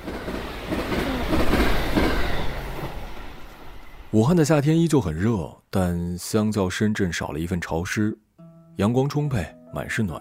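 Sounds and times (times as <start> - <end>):
wheels clickety-clack: 0.0 - 3.2
passenger train to Wuhan rumbling on rails: 0.0 - 4.6
speech: 4.1 - 8.2, 8.8 - 10.1.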